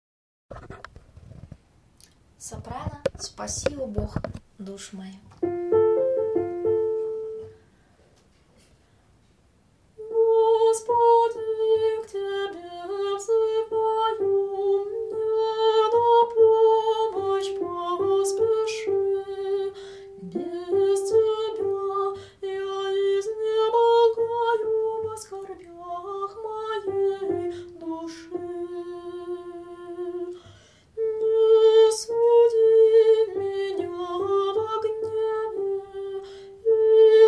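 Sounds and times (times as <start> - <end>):
soprano singing: 5.4 - 7.6, 10.0 - 37.2.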